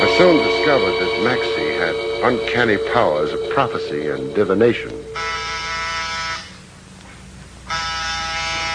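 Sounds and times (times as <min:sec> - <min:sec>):
speech: 0:00.2 - 0:05.0
door buzzer ringing: 0:05.1 - 0:06.6, 0:07.7 - 0:08.7.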